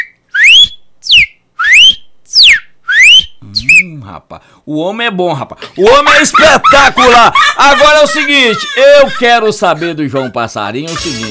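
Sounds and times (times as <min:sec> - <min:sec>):
person whistling an imitation of a cardinal's call: 0:00.0 - 0:03.9
speech: 0:04.1 - 0:11.2
laughter: 0:05.8 - 0:11.2.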